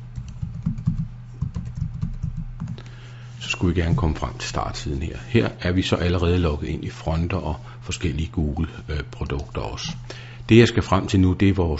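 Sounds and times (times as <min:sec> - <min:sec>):
typing on a computer keyboard: 0:00.2 - 0:02.8
speech: 0:03.4 - 0:11.7.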